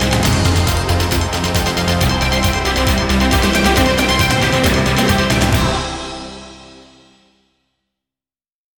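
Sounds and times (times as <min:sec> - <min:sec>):
brass bang: 0:00.0 - 0:07.0.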